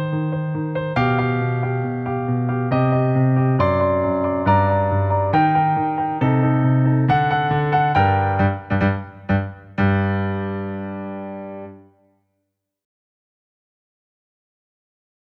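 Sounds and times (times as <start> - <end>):
piano symphony: 0.0 - 12.0.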